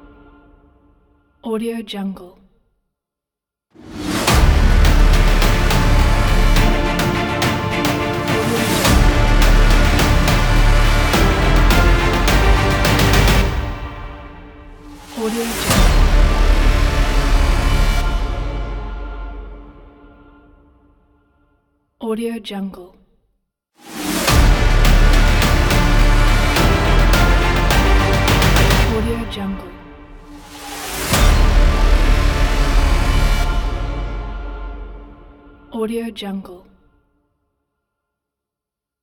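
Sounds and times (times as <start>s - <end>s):
powerful epic ident music: 3.8s - 20.2s, 23.8s - 35.7s.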